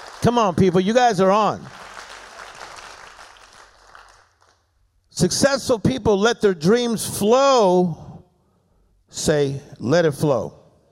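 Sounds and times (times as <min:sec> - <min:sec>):
audience clapping hands: 0:00.0 - 0:04.7
speech: 0:00.2 - 0:01.8, 0:05.2 - 0:08.0, 0:09.1 - 0:10.6.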